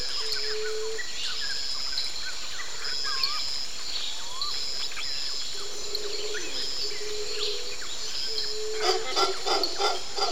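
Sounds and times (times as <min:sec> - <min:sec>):
birds calling in a wet jungle: 0:00.0 - 0:10.3
steady high insect drone: 0:00.0 - 0:10.3
burst of rapid clattering calls: 0:08.8 - 0:10.3.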